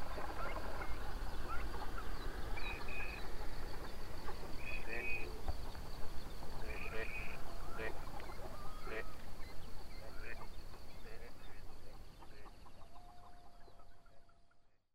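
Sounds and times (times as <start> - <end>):
chorus of coyotes with warbling yips and wavering howls: 0.0 - 14.8.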